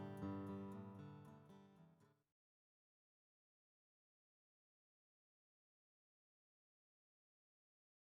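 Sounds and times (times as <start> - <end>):
RainSong graphite Black Ice jumbo acoustic guitar: 0.0 - 2.2.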